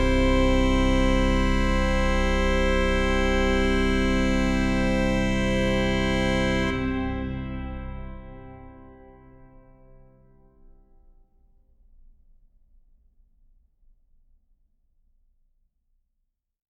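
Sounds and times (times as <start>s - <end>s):
trumpet tune in C major: 0.0s - 9.6s
organ: 0.0s - 10.3s.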